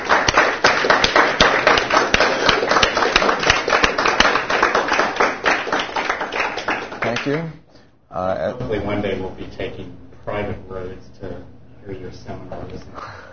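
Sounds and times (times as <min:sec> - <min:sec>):
crowd clapping: 0:00.0 - 0:07.6
speech: 0:07.3 - 0:13.3.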